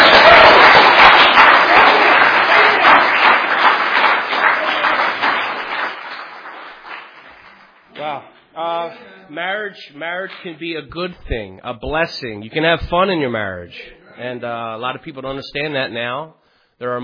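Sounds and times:
crowd applause: 0.0s - 7.9s
speech: 9.4s - 17.0s.

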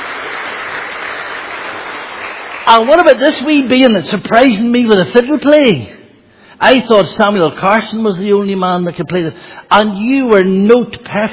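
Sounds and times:
audience applause for a class's helpers: 0.0s - 3.0s
speech: 2.7s - 6.0s, 6.6s - 11.3s.

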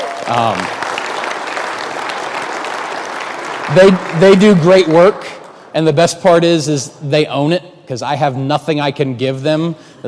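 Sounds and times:
crowd applause: 0.0s - 5.6s
speech: 0.3s - 0.8s, 3.7s - 10.0s.

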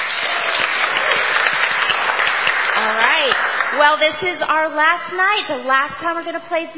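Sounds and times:
game show studio audience applause: 0.0s - 4.6s
speech: 2.9s - 6.7s.

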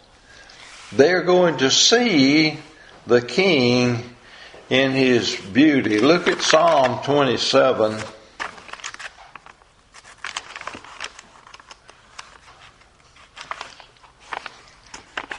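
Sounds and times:
speech: 0.9s - 4.1s, 4.7s - 8.2s
book pages turning: 4.7s - 15.3s.

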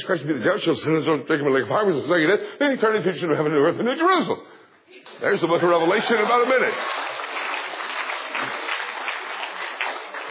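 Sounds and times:
speech: 0.0s - 7.0s
audience applause: 5.8s - 10.3s.

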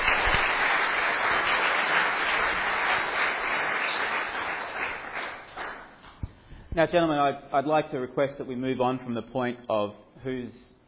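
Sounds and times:
audience applause: 0.0s - 6.0s
speech: 6.8s - 10.7s.

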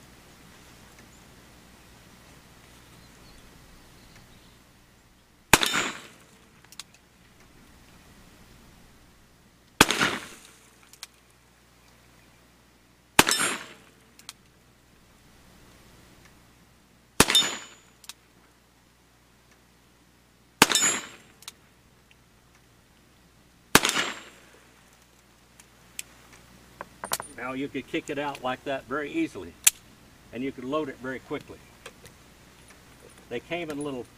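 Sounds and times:
gunshots from a single-action revolver fired right-handed: 5.5s - 6.5s, 9.8s - 10.8s, 13.2s - 14.0s, 17.2s - 17.8s, 20.6s - 21.3s, 23.7s - 24.6s
speech: 27.4s - 29.6s, 30.3s - 31.7s, 33.3s - 34.1s.

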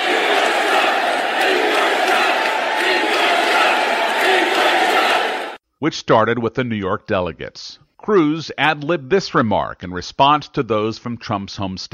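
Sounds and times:
applause in the Quicken Loans Arena in Cleveland: 0.0s - 5.6s
convention crowd booing and chanting: 0.0s - 5.6s
speech: 5.8s - 11.9s.

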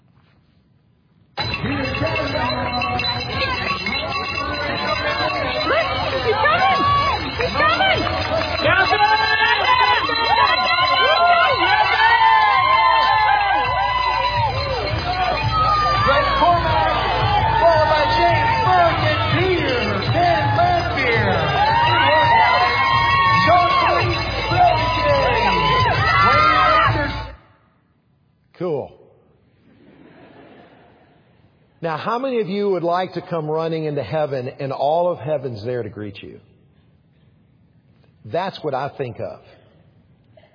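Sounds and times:
crowd cheering a runner at the finish line: 1.4s - 27.4s
speech: 31.9s - 36.5s, 38.2s - 39.6s.

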